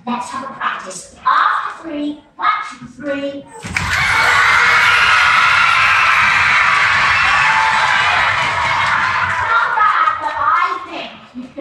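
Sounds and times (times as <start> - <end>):
speech: 0.1 - 2.2
audience stamping feet: 3.7 - 9.6
audience clapping: 3.7 - 10.9.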